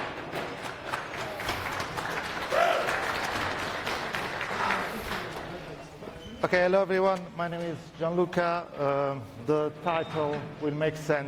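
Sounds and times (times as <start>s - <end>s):
audience applause: 0.0s - 5.7s
speech: 6.4s - 11.2s.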